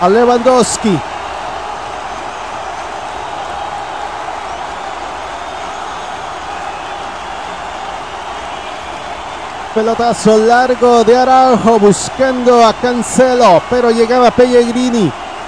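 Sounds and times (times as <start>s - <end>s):
speech: 0.0s - 1.1s, 9.8s - 15.2s
stadium crowd ovation: 0.0s - 15.4s.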